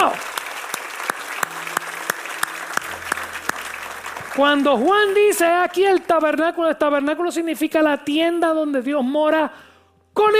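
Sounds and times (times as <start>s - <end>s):
audience applause clapping in time: 0.0s - 6.6s
speech: 4.4s - 10.3s.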